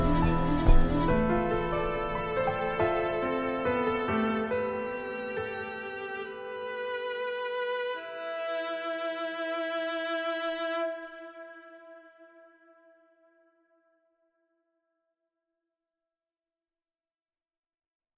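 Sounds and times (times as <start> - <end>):
cello: 0.0 - 13.4
piano: 0.0 - 13.4
viola: 0.0 - 13.6.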